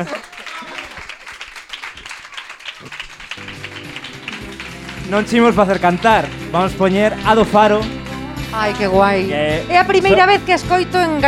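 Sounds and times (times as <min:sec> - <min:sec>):
speech: 0:00.0 - 0:00.2, 0:05.1 - 0:11.2
audience applause: 0:00.0 - 0:08.0.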